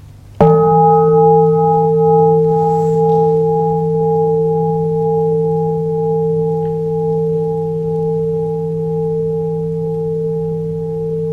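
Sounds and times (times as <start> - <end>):
bell ringing: 0.4 - 11.2.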